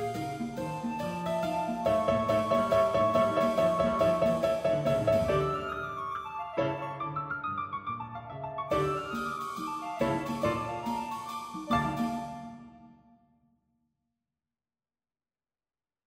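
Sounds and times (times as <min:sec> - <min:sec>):
flute: 0:00.0 - 0:08.1, 0:08.7 - 0:13.2.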